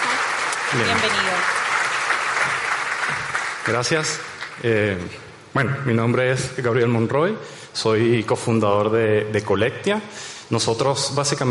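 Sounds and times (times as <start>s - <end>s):
audience clapping: 0.0s - 5.0s
speech: 0.7s - 1.6s, 3.7s - 11.4s.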